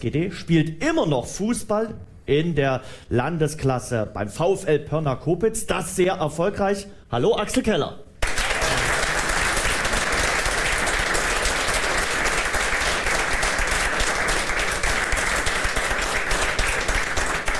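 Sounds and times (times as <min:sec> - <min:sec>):
speech: 0:00.0 - 0:08.0
audience applause: 0:08.2 - 0:17.5.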